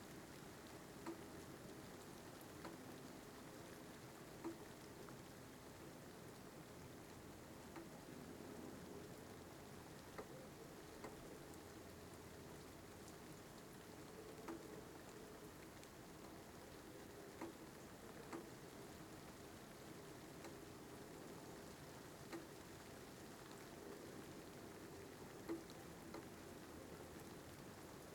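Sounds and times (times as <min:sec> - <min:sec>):
rain heard from shelter: 0:00.0 - 0:28.1.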